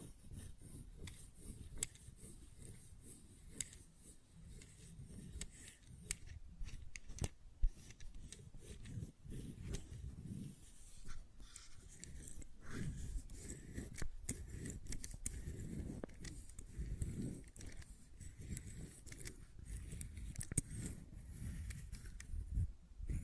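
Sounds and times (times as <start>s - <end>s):
fidget cube tapping and clicking: 0.0s - 10.5s, 11.5s - 23.2s.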